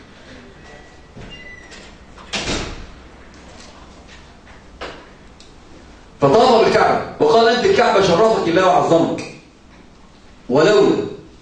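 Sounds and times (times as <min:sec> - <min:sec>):
door swinging shut with a solid thud: 0:02.2 - 0:03.0
speech: 0:06.2 - 0:09.3, 0:10.5 - 0:11.0.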